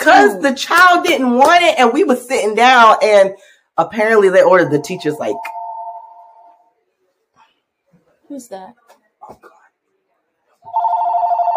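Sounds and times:
speech: 0:00.0 - 0:05.6, 0:08.3 - 0:09.5
loud steady electronic telephone ringtone: 0:04.9 - 0:06.6, 0:10.7 - 0:11.5.

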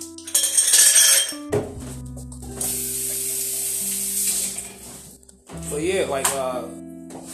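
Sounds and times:
ice cubes dumped into a glass: 0:00.2 - 0:01.5
steady fizzing hiss: 0:02.6 - 0:04.9
speech: 0:05.8 - 0:06.9.

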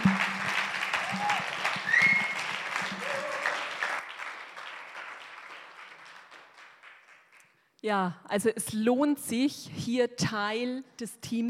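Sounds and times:
audience applause: 0:00.0 - 0:07.4
speech: 0:07.8 - 0:11.4.

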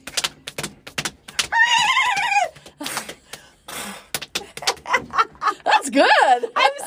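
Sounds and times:
hand slaps on a lap imitating horse hooves: 0:00.0 - 0:05.1
speech: 0:05.9 - 0:06.6.

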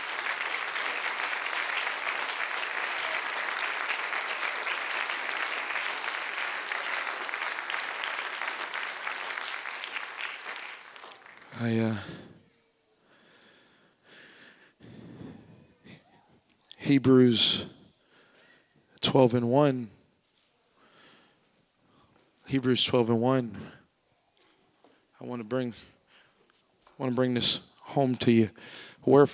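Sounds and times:
audience clapping hands: 0:00.0 - 0:12.1
speech: 0:11.6 - 0:12.2, 0:16.9 - 0:17.7, 0:19.1 - 0:20.0, 0:22.5 - 0:23.8, 0:25.4 - 0:25.9, 0:27.0 - 0:29.3.

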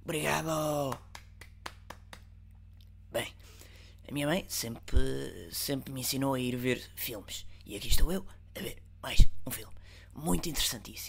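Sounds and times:
low steady hum: 0:00.0 - 0:11.0
speech: 0:00.1 - 0:01.1, 0:03.2 - 0:03.4, 0:04.1 - 0:11.0
hand claps: 0:00.7 - 0:02.6.

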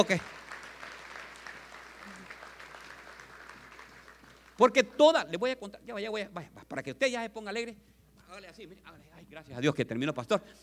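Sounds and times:
speech: 0:00.0 - 0:00.4, 0:04.6 - 0:10.6
audience applauding: 0:00.0 - 0:05.1.

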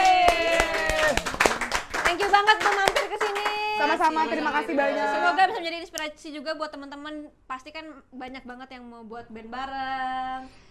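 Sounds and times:
audience clapping: 0:00.0 - 0:04.4
speech: 0:03.8 - 0:10.6.

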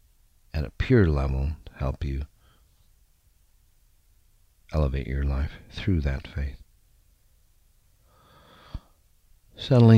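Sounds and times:
speech: 0:00.6 - 0:02.3, 0:04.7 - 0:06.6, 0:09.6 - 0:09.9
deep inhale during a guided four-count breathing exercise: 0:02.4 - 0:02.8, 0:08.0 - 0:09.1.

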